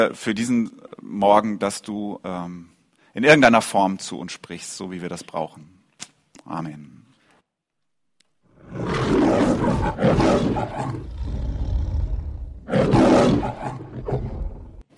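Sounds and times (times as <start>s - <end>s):
speech: 0.0s - 5.8s, 6.4s - 7.0s, 8.7s - 11.5s, 12.7s - 14.5s
lion roaring: 8.5s - 14.8s.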